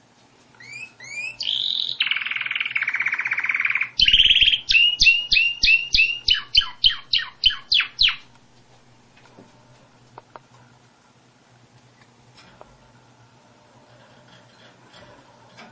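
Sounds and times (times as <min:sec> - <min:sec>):
canary singing: 0:00.6 - 0:08.4.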